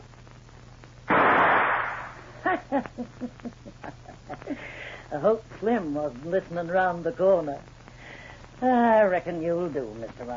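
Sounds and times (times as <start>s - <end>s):
gunshot shooting lock off door: 1.1s - 2.2s
speech: 2.7s - 7.8s, 8.6s - 10.3s.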